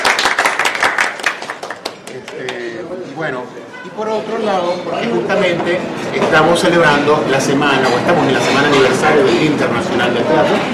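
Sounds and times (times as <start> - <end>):
audience applause: 0.0 - 2.7
speech: 2.2 - 10.7.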